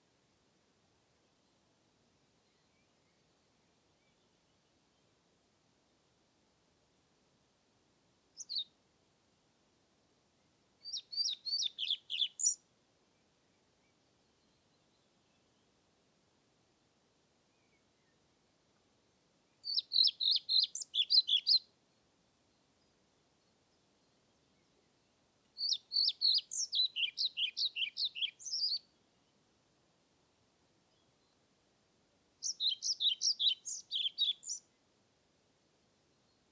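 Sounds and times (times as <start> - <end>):
European Pied Flycatcher singing: 8.4 - 8.7, 10.8 - 12.6, 19.6 - 21.6, 25.6 - 28.9, 32.4 - 34.7.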